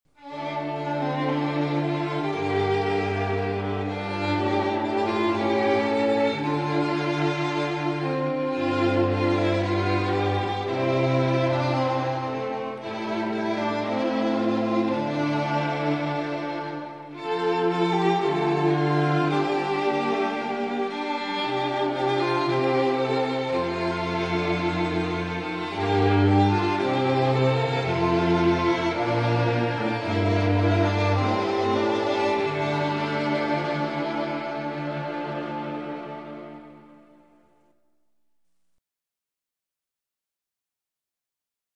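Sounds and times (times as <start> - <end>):
string quartet: 0.1 - 37.5.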